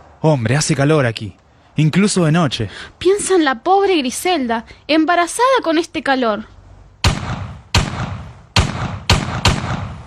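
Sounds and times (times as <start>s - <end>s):
speech: 0.2s - 6.5s
gunshots in a radio drama: 7.0s - 10.0s.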